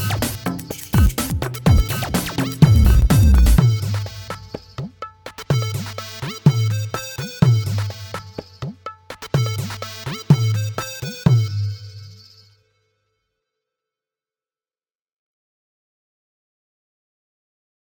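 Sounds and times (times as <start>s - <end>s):
electro ethnic percussion: 0.0s - 12.0s.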